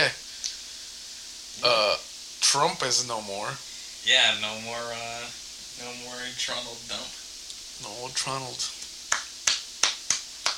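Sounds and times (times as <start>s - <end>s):
speech: 1.6s - 7.2s, 7.8s - 8.8s
hand clapping: 8.8s - 10.5s.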